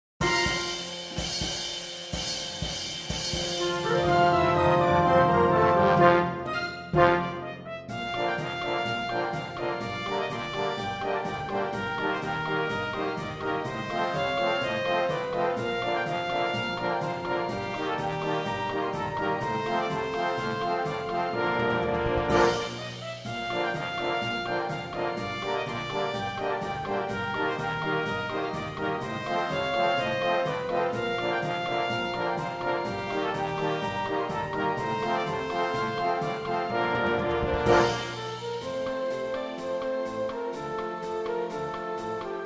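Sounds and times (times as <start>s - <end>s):
circus comedy trumpet concertino: 0.2s - 42.4s.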